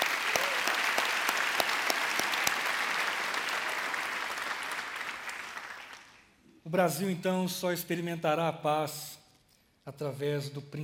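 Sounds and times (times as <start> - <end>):
audience applause: 0.0 - 6.2
speech: 6.7 - 9.2, 9.8 - 10.8.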